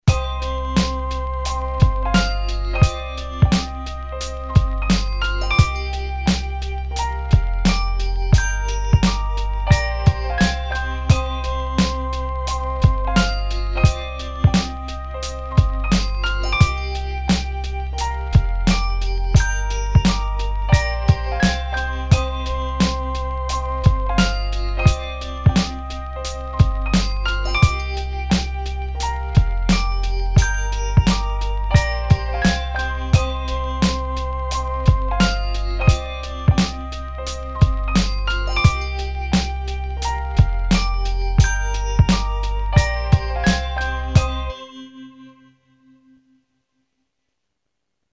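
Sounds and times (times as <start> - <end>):
orchestra beat: 0.0 - 44.5.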